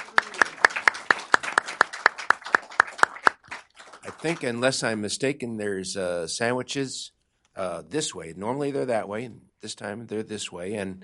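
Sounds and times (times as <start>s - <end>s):
audience clapping thanking a panel at the end of a talk: 0.0s - 4.8s
speech: 4.2s - 11.0s.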